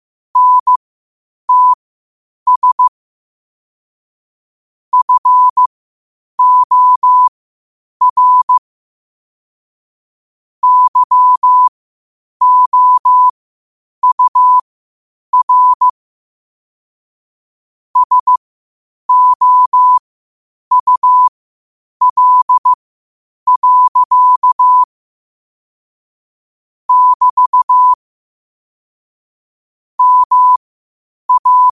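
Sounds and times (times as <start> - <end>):
morse code at 5 wpm: 0.4 - 0.8, 1.5 - 1.8, 2.5 - 2.9, 4.9 - 5.7, 6.4 - 7.3, 8.0 - 8.6, 10.6 - 11.7, 12.4 - 13.3, 14.0 - 14.6, 15.3 - 15.9, 18.0 - 18.4, 19.1 - 20.0, 20.7 - 21.3, 22.0 - 22.8, 23.5 - 24.9, 26.9 - 28.0, 30.0 - 30.6, 31.3 - 31.7.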